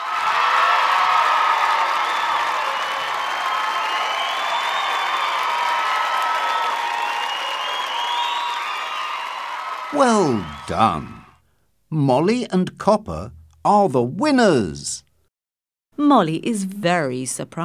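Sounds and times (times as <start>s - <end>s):
spectators applauding: 0.0s - 11.4s
speech: 10.0s - 11.2s, 11.9s - 15.1s, 16.0s - 17.6s.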